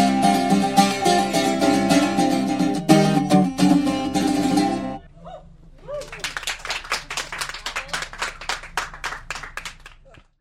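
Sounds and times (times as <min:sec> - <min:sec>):
music in a tent: 0:00.0 - 0:05.0.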